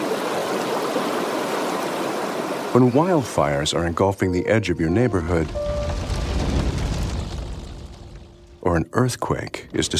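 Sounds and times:
rushing floodwater: 0.0s - 6.9s
speech: 2.8s - 5.8s, 8.8s - 9.9s.

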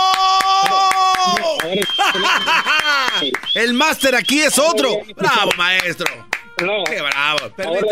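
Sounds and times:
clapping: 0.0s - 3.6s, 5.4s - 7.6s
laughter: 1.7s - 3.3s
speech: 1.8s - 7.9s.

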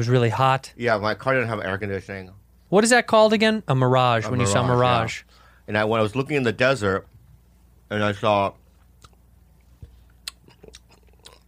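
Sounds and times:
speech: 0.0s - 7.1s, 7.9s - 8.6s
chewing candy corn into a microphone: 10.2s - 11.4s.

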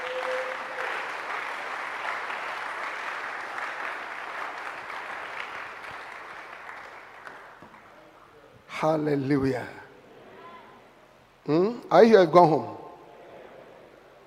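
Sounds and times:
audience clapping hands: 0.0s - 8.1s
speech: 8.8s - 9.8s, 11.5s - 12.8s.

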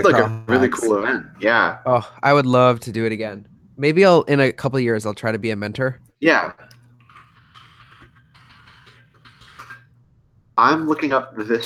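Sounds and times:
speech: 0.0s - 6.7s, 10.6s - 11.6s
computer keyboard typing: 6.6s - 9.8s.

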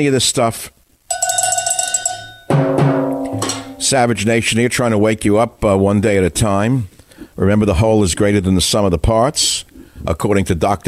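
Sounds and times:
speech: 0.0s - 0.8s, 3.8s - 10.8s
cowbell being struck: 1.1s - 4.0s.

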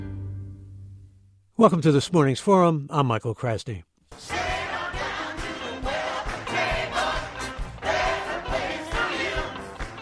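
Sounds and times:
speech: 1.6s - 4.3s
church choir singing: 4.2s - 9.8s
rhythmic beat: 4.2s - 10.0s.

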